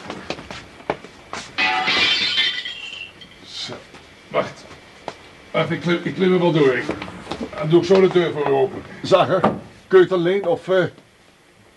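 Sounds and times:
window glass being smashed: 1.6 - 3.3
speech: 5.6 - 7.0, 7.6 - 11.0.

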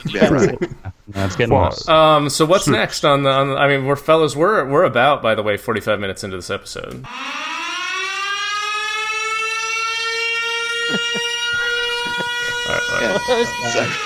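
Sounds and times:
laughter: 0.0 - 1.8, 10.7 - 14.0
speech: 0.0 - 7.6, 12.7 - 14.0
siren sound effect: 7.1 - 14.0.

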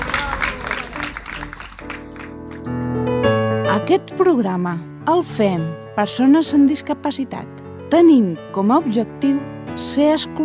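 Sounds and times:
applause: 0.0 - 2.7
speech: 3.7 - 10.4.

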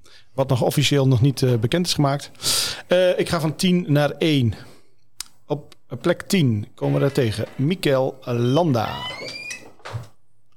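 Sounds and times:
speech: 0.4 - 4.7, 5.5 - 9.3
door being pulled shut: 8.7 - 10.2.

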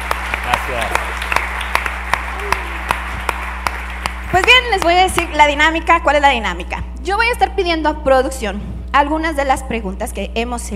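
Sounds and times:
audience applause with slow evenly spaced claps: 0.0 - 5.4
constant low electrical hum: 0.0 - 10.7
speech: 4.4 - 10.7.

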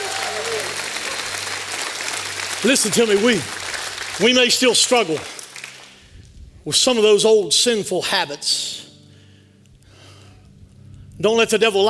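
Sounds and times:
audience clapping: 0.0 - 6.1
speech: 2.6 - 3.6, 4.2 - 5.4, 6.6 - 8.8, 11.2 - 11.8.

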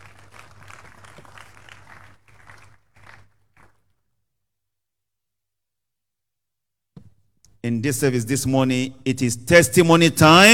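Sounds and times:
audience clapping: 0.0 - 4.0
speech: 7.6 - 10.5.

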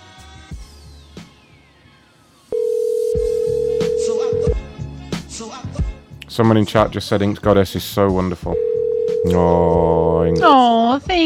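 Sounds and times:
ringback tone of an outgoing telephone call: 2.5 - 4.6, 8.6 - 9.6
speech: 6.4 - 11.2.

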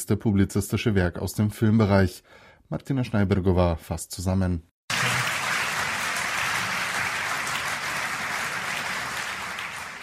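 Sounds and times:
speech: 0.0 - 4.7
audience applause at award ceremony: 4.9 - 10.0.

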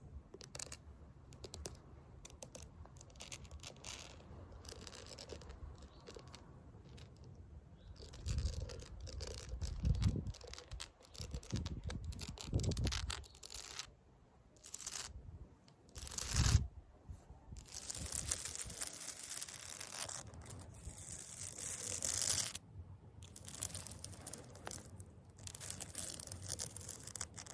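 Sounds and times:
fake nails scratching concrete: 0.3 - 14.0, 14.6 - 16.7, 17.5 - 22.6, 23.2 - 27.5.

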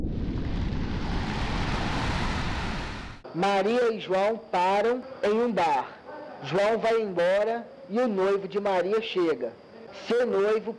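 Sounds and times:
heavy rain: 0.0 - 3.2
thunder: 0.0 - 3.2
speech: 3.4 - 10.7.

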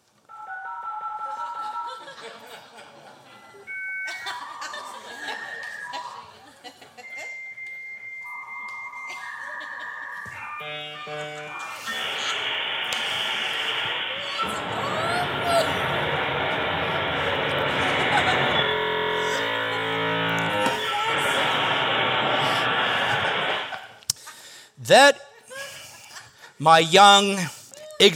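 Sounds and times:
laughter: 1.3 - 7.4, 14.4 - 20.3
dial-up modem connecting: 10.5 - 23.8
speech: 24.9 - 25.2, 26.6 - 28.1.

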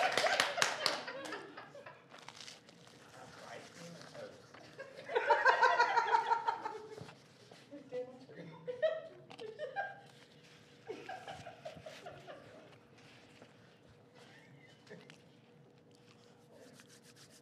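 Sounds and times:
hands clapping: 0.0 - 1.5
laughter: 0.0 - 2.1, 4.6 - 7.1, 8.4 - 10.2, 10.8 - 12.8.

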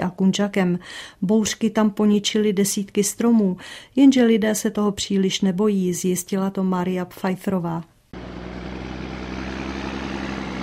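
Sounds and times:
speech: 0.2 - 7.9
heavy forestry machinery working: 8.2 - 10.6.

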